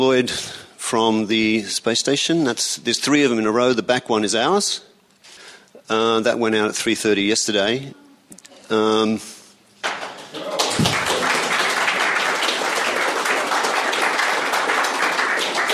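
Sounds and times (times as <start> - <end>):
speech: 0.0 - 4.9, 5.9 - 8.0, 8.7 - 9.3
audience applause: 10.0 - 15.7.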